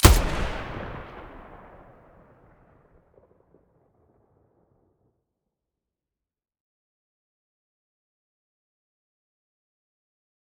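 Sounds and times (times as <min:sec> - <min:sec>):
MDR gun muzzle blast: 0:00.0 - 0:01.9.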